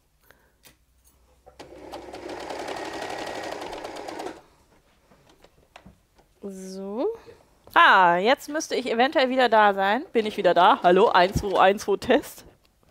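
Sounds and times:
sewing machine run by its foot pedal stitching fabric: 1.5s - 4.5s
speech: 6.4s - 12.5s.

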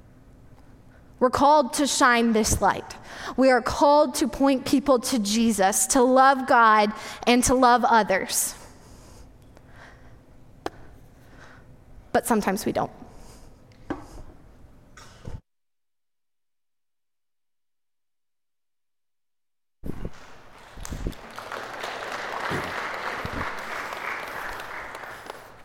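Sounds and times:
speech: 1.2s - 8.6s, 12.2s - 13.0s
audience applause: 20.4s - 25.6s.

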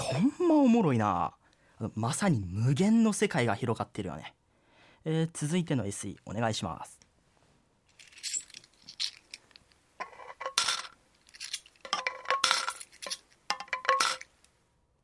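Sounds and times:
speech: 0.1s - 4.4s, 5.0s - 7.0s
coins dropping into a savings jar: 7.9s - 14.4s.

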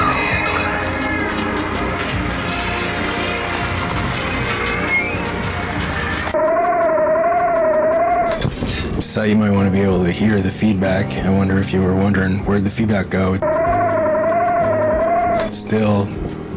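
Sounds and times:
ring modulator audio effect: 0.0s - 8.4s, 13.4s - 15.6s
speech: 9.2s - 13.6s, 15.7s - 16.4s.

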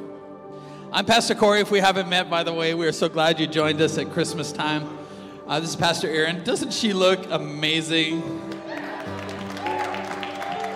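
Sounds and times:
speech: 0.9s - 8.5s
audience clapping: 8.5s - 10.7s.

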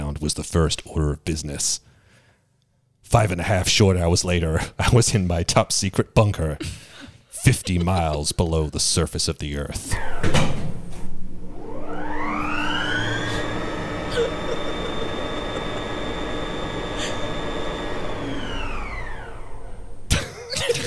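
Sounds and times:
speech: 0.2s - 1.9s, 3.0s - 6.8s, 7.4s - 10.6s
laughter: 6.6s - 9.2s, 14.1s - 17.3s, 20.1s - 20.8s
elevator motor whirring like a vacuum cleaner: 9.8s - 20.2s
sharp clunk of elevator stopping: 10.2s - 11.1s.

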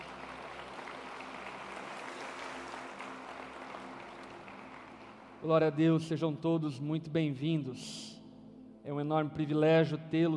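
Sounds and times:
church audience applauding: 0.0s - 5.4s
speech: 5.4s - 8.1s, 8.8s - 10.3s.

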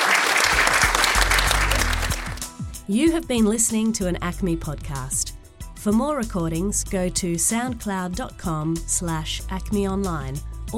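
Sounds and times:
audience applauding guests at a conversation event: 0.0s - 2.5s
speech: 2.9s - 10.7s.

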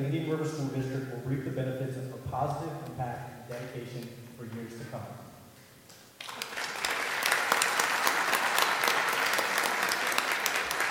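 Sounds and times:
speech: 0.0s - 5.3s
audience applause: 6.2s - 10.8s.

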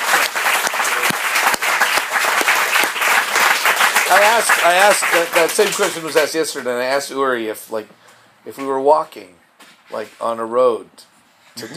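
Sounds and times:
audience applause: 0.0s - 6.4s
speech: 4.1s - 11.7s.

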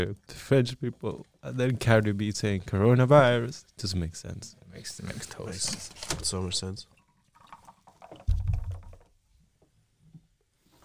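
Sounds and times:
speech: 0.0s - 7.0s
sparkling water poured into red wine: 6.9s - 8.9s
fizz of crackling bubbles: 6.9s - 9.1s.

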